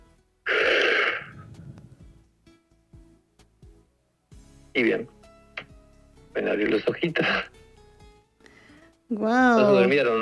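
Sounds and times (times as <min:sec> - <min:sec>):
deep breath exhaled through the mouth during a relaxation exercise: 0:00.5 - 0:02.2
soft low thumps and rustles: 0:01.3 - 0:02.3
speech: 0:04.8 - 0:05.2, 0:06.4 - 0:07.6, 0:09.1 - 0:10.1.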